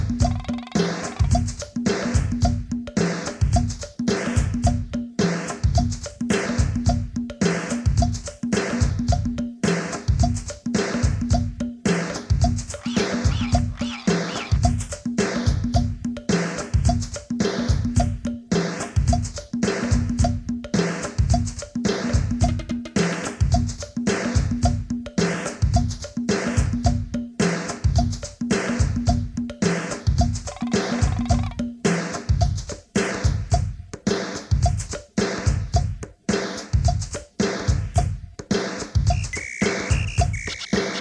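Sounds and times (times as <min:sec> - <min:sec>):
rhythmic patterns: 0:00.0 - 0:40.9.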